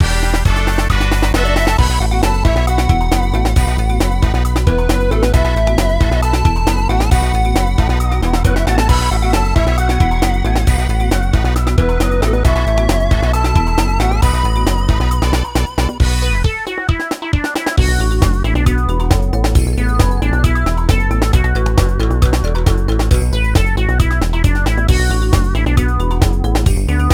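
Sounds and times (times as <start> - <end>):
boss defeated game music: 0.0 - 27.1.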